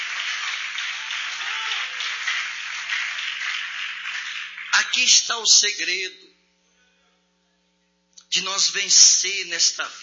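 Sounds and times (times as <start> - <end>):
audience applause: 0.0 - 5.1
speech: 4.8 - 6.4, 8.3 - 10.0.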